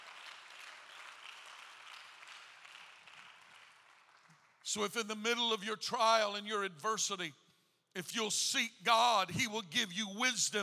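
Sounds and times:
audience hand clapping: 0:00.0 - 0:04.7
speech: 0:04.7 - 0:07.4, 0:08.0 - 0:10.6.

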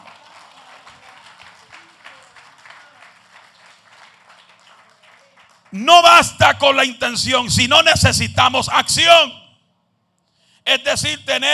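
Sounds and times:
audience applause: 0:00.0 - 0:05.8
speech: 0:05.7 - 0:09.4, 0:10.7 - 0:11.5.

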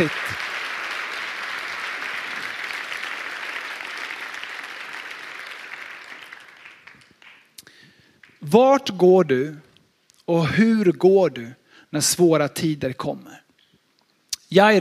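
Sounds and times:
speech: 0:00.0 - 0:00.4, 0:08.5 - 0:09.7, 0:10.3 - 0:13.4, 0:14.5 - 0:14.7
big round of applause for the fathers: 0:00.0 - 0:07.6.

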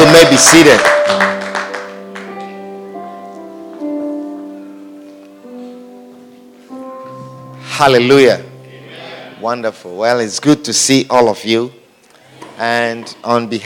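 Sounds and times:
audience clapping hands: 0:00.0 - 0:02.6
speech: 0:00.2 - 0:01.2, 0:07.8 - 0:08.5, 0:09.4 - 0:11.8, 0:12.6 - 0:13.6.

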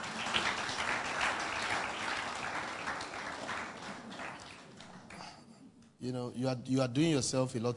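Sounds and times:
crowd audience clapping hands: 0:00.0 - 0:05.3
speech: 0:06.0 - 0:07.7.

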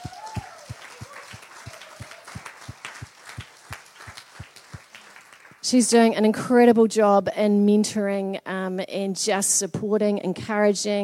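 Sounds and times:
audience clapping: 0:00.0 - 0:05.8
speech: 0:05.7 - 0:11.0.

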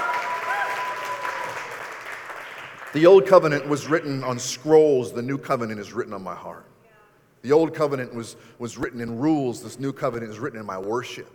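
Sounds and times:
audience clapping: 0:00.0 - 0:04.1
speech: 0:02.9 - 0:06.7, 0:07.4 - 0:11.3.

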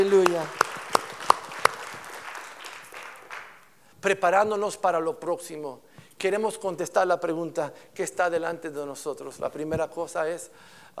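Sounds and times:
speech: 0:00.0 - 0:00.6, 0:04.0 - 0:10.9
audience applause: 0:00.0 - 0:03.6.

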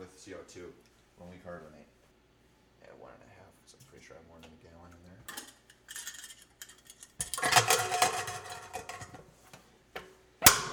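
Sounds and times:
speech: 0:00.2 - 0:02.0, 0:02.8 - 0:05.5
lid fitted onto a homebrew container of just over a gallon: 0:05.3 - 0:09.3, 0:10.4 - 0:10.7.

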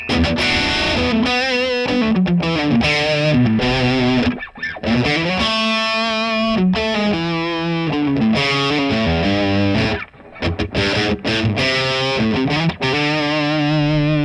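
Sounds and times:
distorted electric guitar through new amp: 0:00.0 - 0:14.2.

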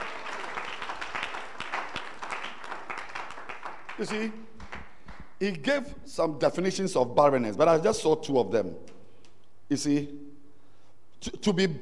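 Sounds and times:
church congregation clapping for a bishop during a sermon: 0:00.0 - 0:05.5
speech: 0:04.0 - 0:04.5, 0:05.4 - 0:08.9, 0:09.7 - 0:10.2, 0:11.2 - 0:11.8.

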